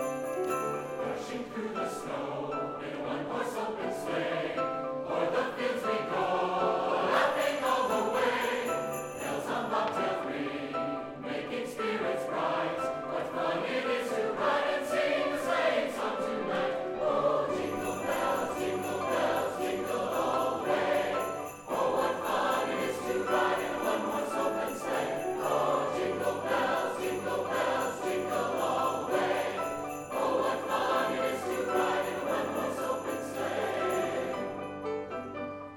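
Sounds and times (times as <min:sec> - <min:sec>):
SATB four-part choir singing: 0:00.2 - 0:35.5.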